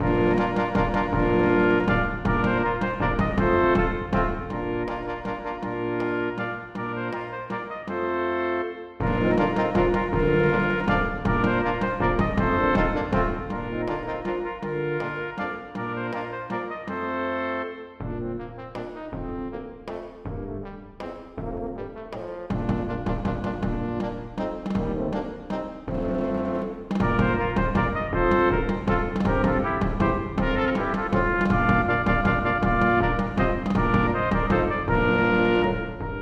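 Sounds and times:
drums: 0:00.0 - 0:07.7, 0:09.0 - 0:16.7, 0:18.0 - 0:36.2
brass quintet playing a minuet: 0:00.0 - 0:36.2.

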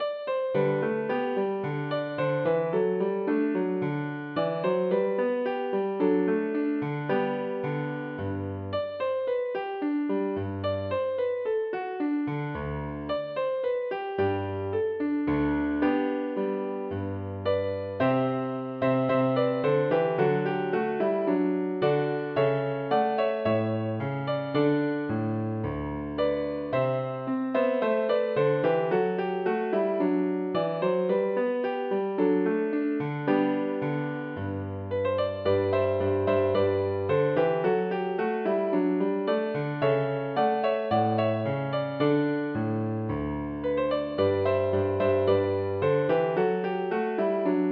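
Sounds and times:
allemande piano piece: 0:00.0 - 0:47.6.

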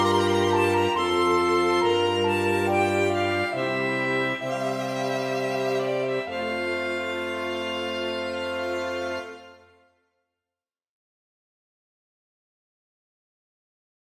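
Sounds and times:
minuet for violin and small ensemble: 0:00.0 - 0:09.8.

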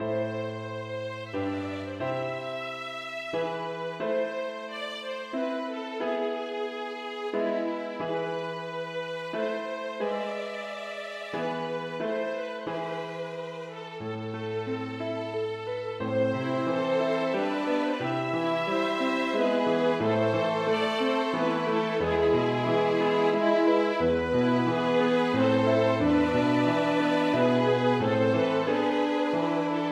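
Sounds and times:
aria for two violins horn and piano: 0:00.0 - 0:29.9.

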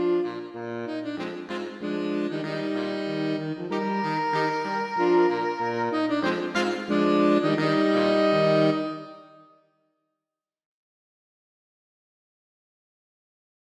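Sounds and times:
saxophone quartet playing a bourrée: 0:00.0 - 0:09.4.

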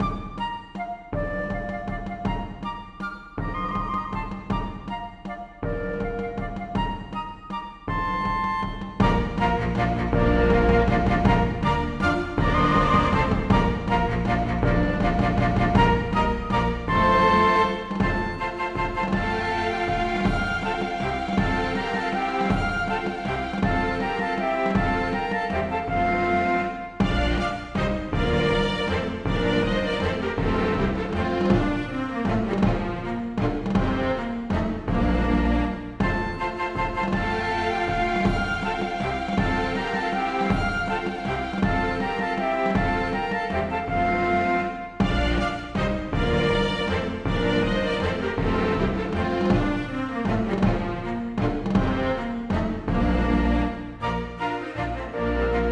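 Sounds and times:
minuet for flutes, strings and percussion: 0:00.0 - 0:55.7.

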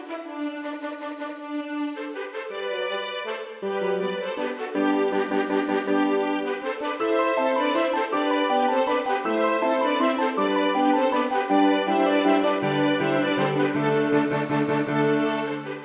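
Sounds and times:
horn: 0:00.0 - 0:15.8
two violins: 0:00.0 - 0:15.8
piano: 0:03.5 - 0:15.8.

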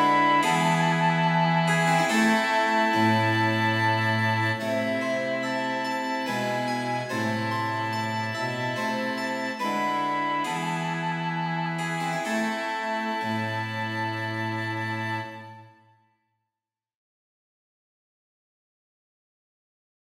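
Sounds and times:
harpsichord: 0:00.0 - 0:15.3
cello: 0:00.0 - 0:15.8
flute: 0:00.0 - 0:15.8
violin: 0:00.0 - 0:15.9.

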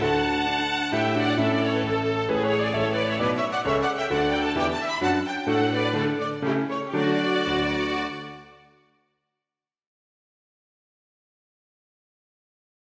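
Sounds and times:
minuet for two violins and piano: 0:00.0 - 0:08.7.

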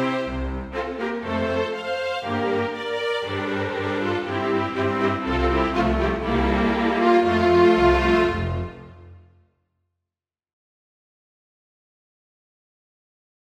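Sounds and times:
march for string quintet: 0:00.0 - 0:09.2.

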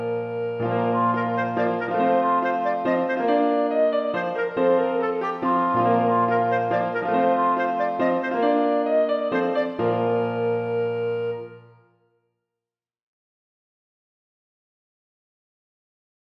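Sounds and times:
piano: 0:00.0 - 0:11.9
clarinet: 0:00.0 - 0:12.0.

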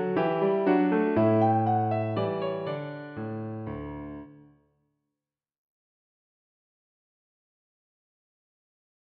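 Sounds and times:
piano minuet: 0:00.0 - 0:04.5.

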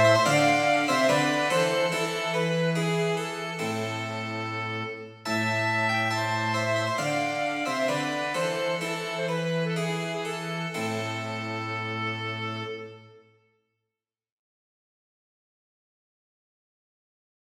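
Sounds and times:
harpsichord playing an air: 0:00.0 - 0:12.8
cello playing an air: 0:00.0 - 0:13.2
flute playing an air: 0:00.0 - 0:13.2
violin playing an air: 0:00.0 - 0:13.3.

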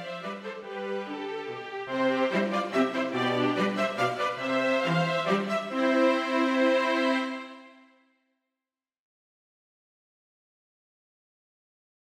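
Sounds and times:
minuet for two violins and cello: 0:00.0 - 0:07.9.

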